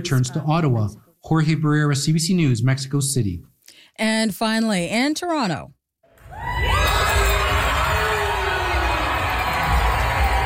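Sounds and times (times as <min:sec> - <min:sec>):
speech: 0:00.0 - 0:05.8
large crowd cheering and whooping at music prize ceremony: 0:06.2 - 0:10.4.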